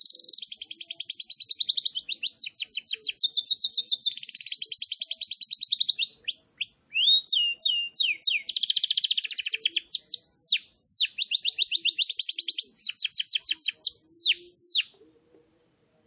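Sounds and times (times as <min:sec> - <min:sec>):
canary song: 0:00.0 - 0:15.9.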